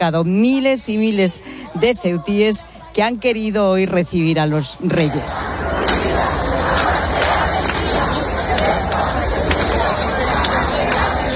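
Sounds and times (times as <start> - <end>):
speech: 0.0 - 6.9
crowd chanting: 4.8 - 11.3
applause: 6.8 - 11.3.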